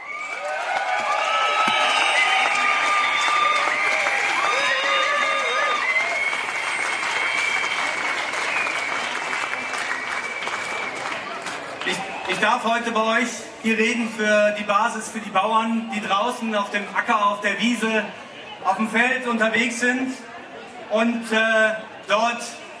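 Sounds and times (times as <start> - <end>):
crowd applause at outdoor rally: 0.0 - 12.6
speech: 12.4 - 20.3, 20.9 - 22.6.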